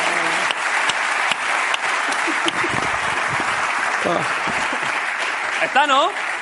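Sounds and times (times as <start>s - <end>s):
applause: 0.0s - 6.4s
laughter: 1.9s - 5.4s
speech: 4.0s - 4.6s, 5.6s - 6.2s.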